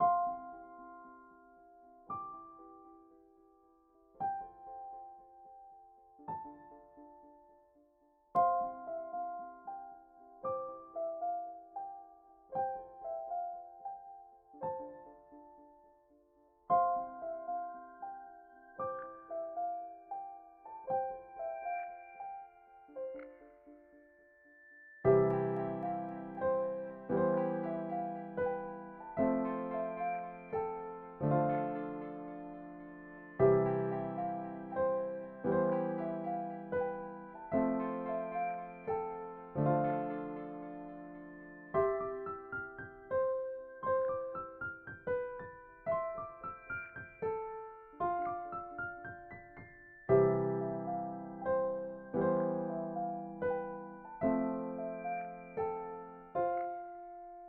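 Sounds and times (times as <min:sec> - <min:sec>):
piano loop: 0:00.0 - 0:57.4.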